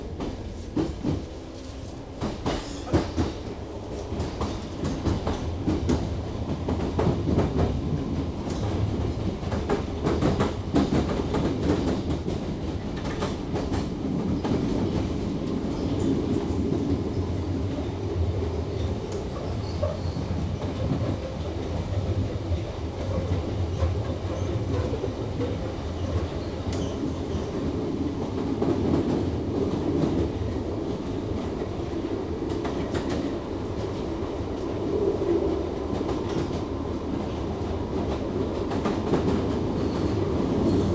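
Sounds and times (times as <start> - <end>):
London Underground trains: 0.0 - 40.9.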